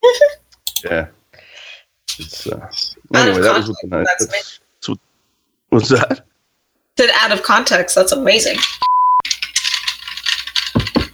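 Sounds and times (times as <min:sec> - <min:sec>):
speech: 0:00.8 - 0:01.2, 0:02.2 - 0:05.1, 0:05.7 - 0:06.3, 0:07.0 - 0:08.9
ice rattling in a glass: 0:08.6 - 0:11.1.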